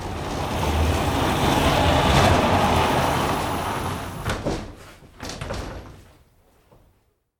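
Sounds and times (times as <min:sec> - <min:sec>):
door closing: 0:00.0 - 0:06.1.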